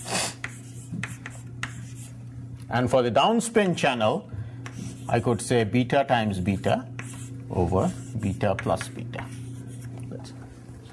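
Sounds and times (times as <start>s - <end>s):
writing on a board during a physics lecture: 0.4s - 2.1s, 7.0s - 10.0s
speech: 2.7s - 4.3s, 5.1s - 6.9s, 7.5s - 9.1s.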